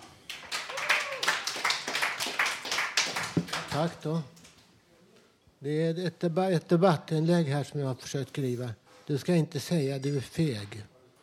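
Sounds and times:
audience applause: 0.0s - 3.9s
voices and whoops: 0.6s - 1.6s
speech: 3.8s - 4.4s, 5.6s - 10.9s.

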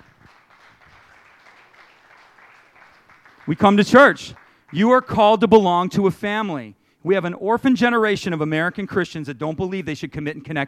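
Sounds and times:
audience clapping: 0.0s - 5.4s
speech: 3.4s - 10.6s.

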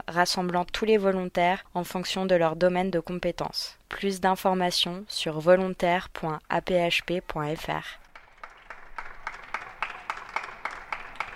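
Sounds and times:
speech: 0.1s - 8.0s
neighbours applauding from windows: 7.3s - 11.3s.

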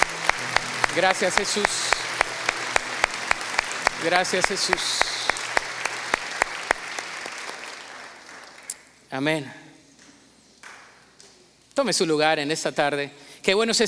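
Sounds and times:
audience applause: 0.0s - 8.8s
speech: 1.0s - 1.9s, 4.0s - 5.1s, 9.1s - 9.6s, 11.8s - 13.8s.

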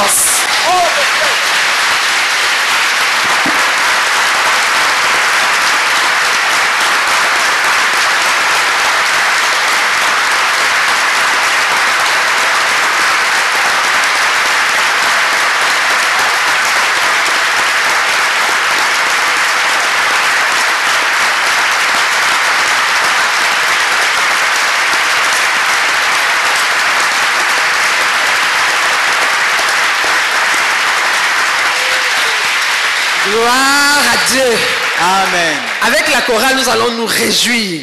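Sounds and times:
congregation at a prayer crusade clapping for the Lord: 0.0s - 37.8s
speech: 36.2s - 37.8s.

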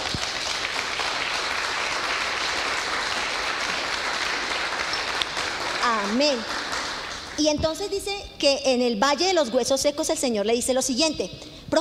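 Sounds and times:
audience applause: 0.0s - 7.4s
speech: 6.1s - 6.6s, 7.4s - 11.7s.

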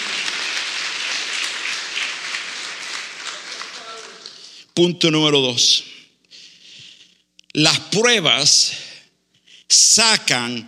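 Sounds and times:
audience applauding loudly: 0.0s - 4.6s
speech: 4.8s - 5.9s, 7.6s - 8.9s, 9.7s - 10.6s.

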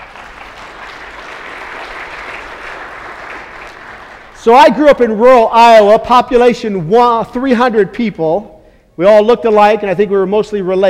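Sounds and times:
audience applause: 0.0s - 4.4s
speech: 4.4s - 10.8s.

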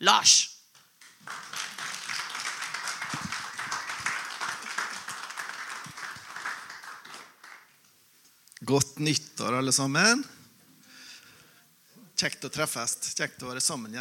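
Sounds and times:
speech: 0.0s - 0.5s, 8.7s - 10.4s, 12.2s - 14.0s
audience applause: 1.0s - 7.7s.

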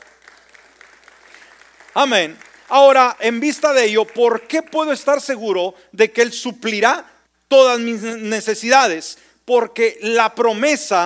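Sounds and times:
audience applause: 0.0s - 4.6s
speech: 2.0s - 11.0s.

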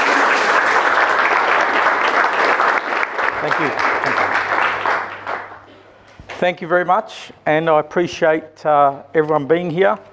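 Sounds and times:
people clapping: 0.0s - 5.7s
speech: 3.5s - 4.2s, 6.4s - 10.1s.

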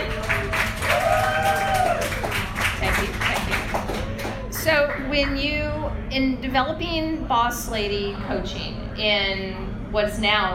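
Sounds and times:
audience applause: 0.0s - 4.9s
speech: 6.2s - 10.5s.

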